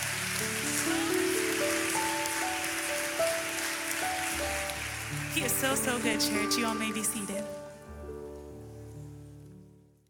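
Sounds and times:
audience clapping hands: 0.0s - 7.5s
speech: 5.4s - 7.5s.

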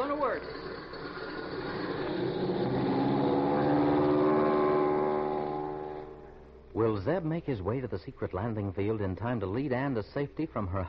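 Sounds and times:
speech: 0.3s - 0.7s, 7.0s - 10.8s
airplane motor starting up and revving: 1.4s - 6.6s.

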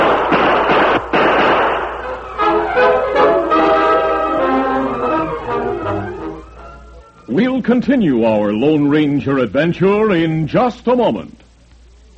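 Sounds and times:
gunshots in a Western radio drama gunfight: 0.0s - 2.4s
sustained tonal passage: 1.8s - 9.5s
speech: 7.7s - 11.4s.

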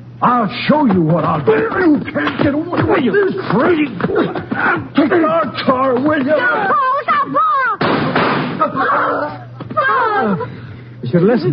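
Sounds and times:
speech: 0.2s - 7.8s, 8.6s - 11.5s
laughter: 1.1s - 7.8s, 8.5s - 10.7s
gunshot: 7.8s - 8.6s.

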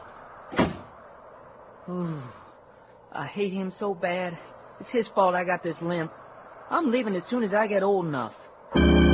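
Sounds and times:
door shutting: 0.5s - 0.9s
speech: 1.9s - 2.4s, 3.1s - 9.0s.

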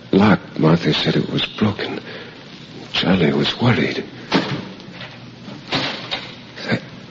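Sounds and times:
speech: 0.1s - 2.1s, 3.0s - 4.5s
outer door closing: 4.3s - 6.4s.

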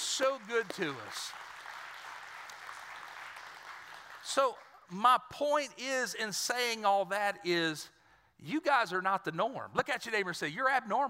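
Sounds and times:
audience clapping: 0.0s - 5.0s
speech: 0.2s - 1.4s, 4.3s - 11.0s.

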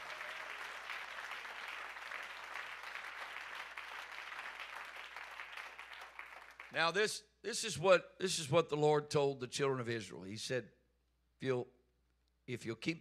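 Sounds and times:
audience clapping hands: 0.0s - 7.0s
speech: 6.7s - 10.8s, 11.4s - 11.8s, 12.5s - 12.9s.

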